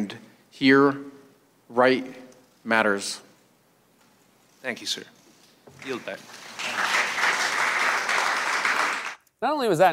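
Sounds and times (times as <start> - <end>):
speech: 0.0 - 1.1, 1.7 - 3.2, 4.6 - 5.2, 5.8 - 6.9, 9.4 - 9.9
audience applause after a congressman's remarks: 5.8 - 9.2.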